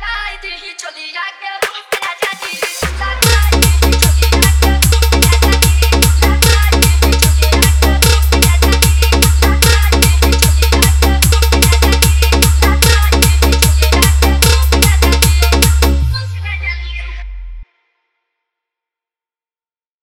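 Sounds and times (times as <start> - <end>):
trance EDM mix: 1.6 - 17.3.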